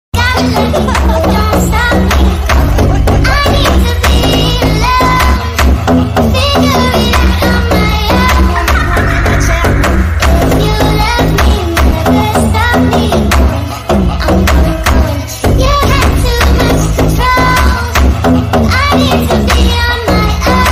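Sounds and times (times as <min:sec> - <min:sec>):
sped up funk song: 0:00.2 - 0:20.6.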